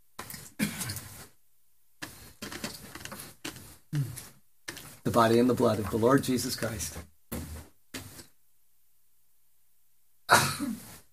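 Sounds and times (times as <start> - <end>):
speech: 5.1 - 7.1
sneeze: 10.3 - 11.0.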